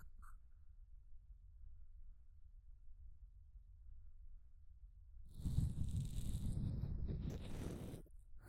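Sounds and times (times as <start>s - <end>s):
ear cleaning sound effect in left channel: 5.4s - 8.1s.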